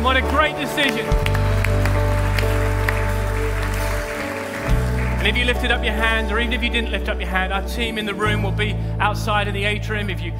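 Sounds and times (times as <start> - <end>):
audience cheering and applause: 0.0 - 6.3
speech: 0.2 - 1.8, 5.2 - 10.3.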